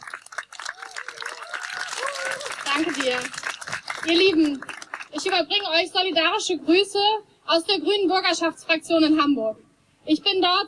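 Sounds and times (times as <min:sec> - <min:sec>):
audience applause: 0:00.0 - 0:05.4
speech: 0:02.8 - 0:03.4, 0:04.0 - 0:10.6.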